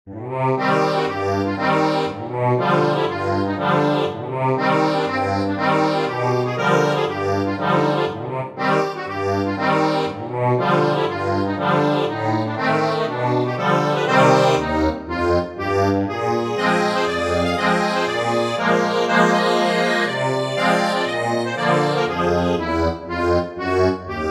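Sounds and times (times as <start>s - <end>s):
accordion: 0.2s - 24.2s.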